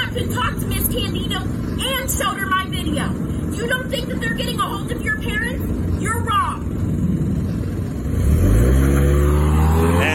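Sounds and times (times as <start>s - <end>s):
speech: 0.1s - 6.8s
car engine revving and accelerating: 7.9s - 10.1s.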